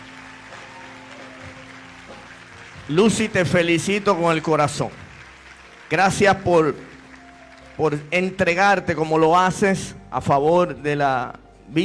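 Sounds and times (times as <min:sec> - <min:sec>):
audience applause: 0:00.0 - 0:08.3
speech: 0:02.9 - 0:05.0, 0:05.9 - 0:06.9, 0:07.8 - 0:11.8.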